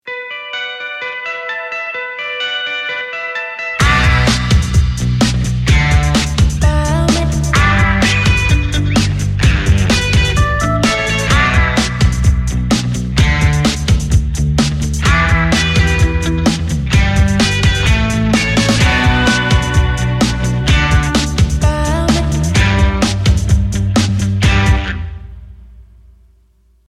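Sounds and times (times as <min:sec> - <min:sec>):
guitar: 0:00.0 - 0:25.8.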